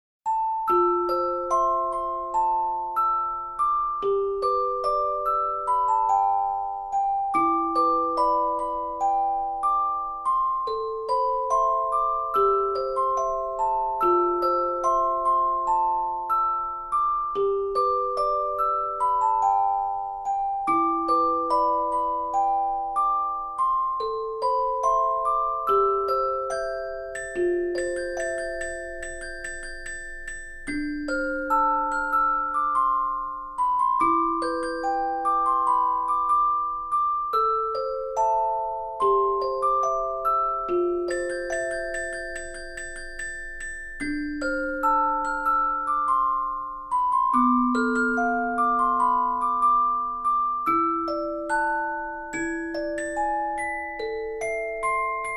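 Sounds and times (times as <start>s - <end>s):
music box: 0.3s - 55.3s.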